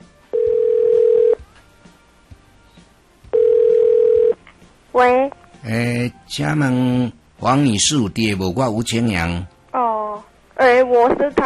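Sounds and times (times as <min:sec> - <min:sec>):
ringback tone of an outgoing telephone call: 0:00.3 - 0:01.4, 0:03.3 - 0:04.4
speech: 0:05.0 - 0:09.5, 0:11.1 - 0:11.4.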